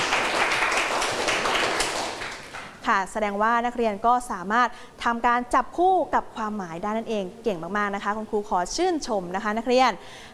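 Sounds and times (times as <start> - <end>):
classroom students clapping for themselves: 0.0 - 2.8
speech: 2.9 - 10.3.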